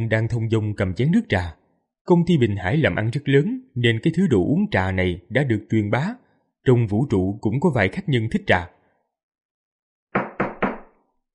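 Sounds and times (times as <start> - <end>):
speech: 0.0 - 8.8
firm knocks on a door: 10.2 - 11.0.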